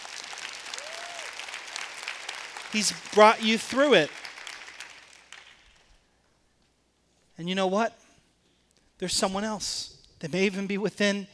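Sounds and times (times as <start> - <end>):
audience cheering and clapping: 0.0 - 5.6
person whooping: 0.7 - 1.4
speech: 2.7 - 4.2, 7.4 - 8.0, 9.0 - 11.3.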